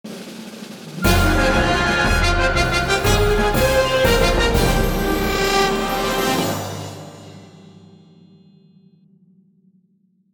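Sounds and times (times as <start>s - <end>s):
airship intro music stem: 1.0s - 8.1s.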